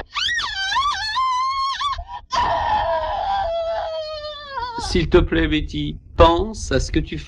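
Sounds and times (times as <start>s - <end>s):
woman's scream from a film scene: 0.0s - 4.9s
speech: 4.9s - 7.2s.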